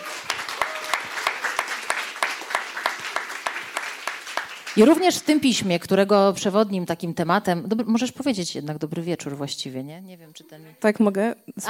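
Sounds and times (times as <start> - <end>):
audience applause: 0.0 - 5.2
speech: 4.8 - 11.6.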